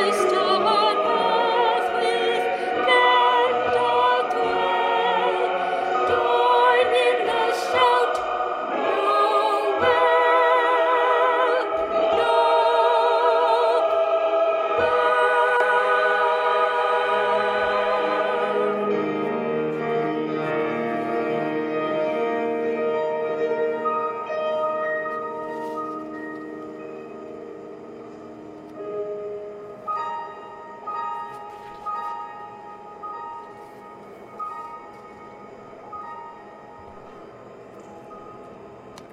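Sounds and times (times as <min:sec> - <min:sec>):
carol: 0:00.0 - 0:39.1.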